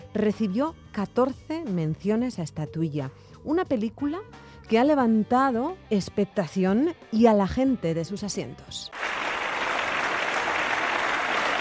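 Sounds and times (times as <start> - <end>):
speech: 0.2 - 9.1
audience ovation at film premiere: 9.0 - 11.6.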